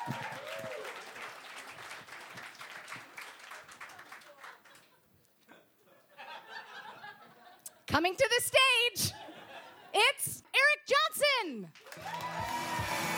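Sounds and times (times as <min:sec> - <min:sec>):
audience applause: 0:00.0 - 0:04.9, 0:11.7 - 0:13.1
laughter: 0:04.4 - 0:07.8, 0:09.0 - 0:10.0
speech: 0:07.9 - 0:09.2.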